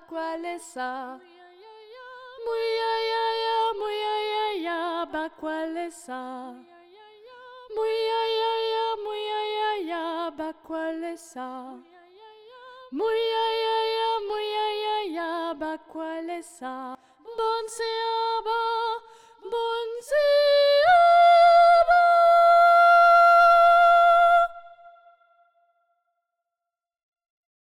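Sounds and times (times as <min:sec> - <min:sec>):
soprano singing: 0:00.0 - 0:25.4.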